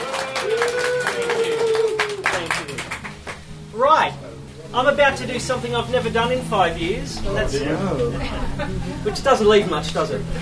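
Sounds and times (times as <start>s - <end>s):
audience applause: 0.0s - 3.5s
speech: 4.8s - 10.3s
laughter: 7.7s - 9.7s.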